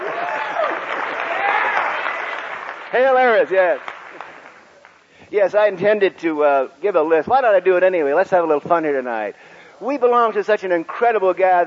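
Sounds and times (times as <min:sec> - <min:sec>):
people whooping: 0:00.0 - 0:03.4
audience applause for Robert Anton Wilson: 0:00.0 - 0:05.0
speech: 0:02.9 - 0:03.9, 0:05.3 - 0:11.6.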